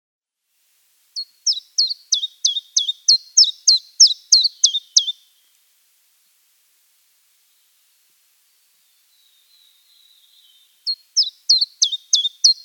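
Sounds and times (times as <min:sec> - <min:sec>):
common chiffchaff singing: 0:01.2 - 0:05.2, 0:10.4 - 0:12.6.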